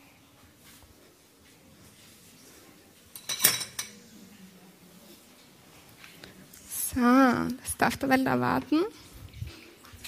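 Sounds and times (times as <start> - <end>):
pots and utensils clattering while macaroni is put on to cook: 3.1 - 4.0
speech: 7.0 - 9.1.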